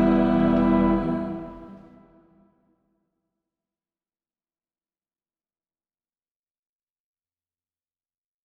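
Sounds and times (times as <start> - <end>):
audience singing a carol: 0.0 - 2.2.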